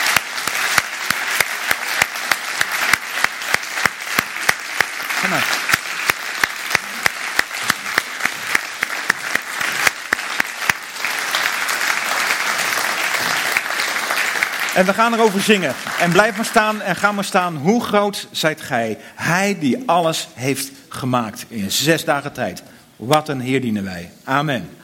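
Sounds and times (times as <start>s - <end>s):
thunderous applause: 0.0s - 16.9s
speech: 5.3s - 5.7s, 14.8s - 24.8s.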